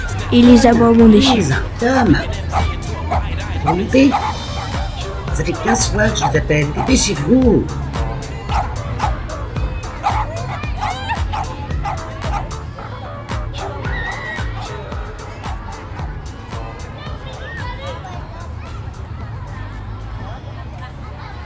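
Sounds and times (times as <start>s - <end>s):
laughter: 0.0s - 16.3s
speech: 0.3s - 4.4s, 5.4s - 7.8s
dog barking: 1.1s - 5.0s, 8.5s - 9.4s, 10.0s - 13.9s.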